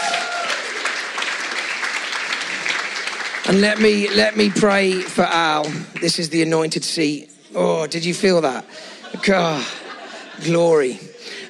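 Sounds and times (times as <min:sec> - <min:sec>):
crowd applauding: 0:00.0 - 0:06.3
speech: 0:03.4 - 0:09.8, 0:10.4 - 0:11.1
laughter: 0:08.7 - 0:11.4.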